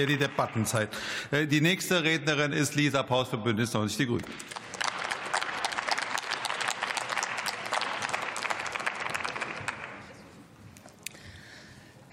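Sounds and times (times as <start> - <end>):
applause in parliament: 0.0 - 1.3, 4.2 - 10.3
speech: 0.0 - 4.6.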